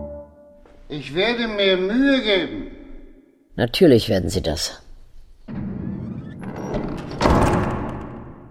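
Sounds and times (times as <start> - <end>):
speech: 1.0 - 2.6, 3.6 - 4.8
heavy oak door falling shut into its lock: 5.1 - 8.5.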